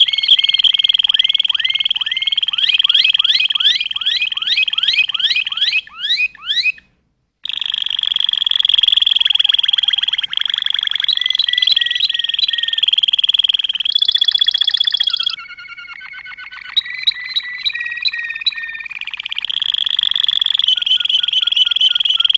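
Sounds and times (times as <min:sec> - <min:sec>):
Waterslager canary song: 0:00.0 - 0:22.3.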